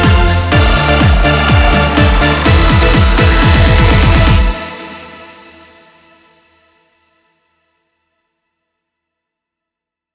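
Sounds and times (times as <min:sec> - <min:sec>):
dance song: 0:00.0 - 0:05.4.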